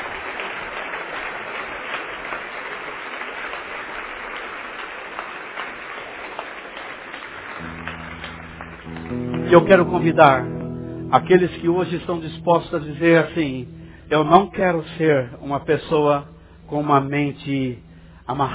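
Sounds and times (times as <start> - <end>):
audience clapping: 0.0 - 14.5
low sustained tone: 7.6 - 18.5
speech: 9.5 - 10.5, 11.1 - 18.5.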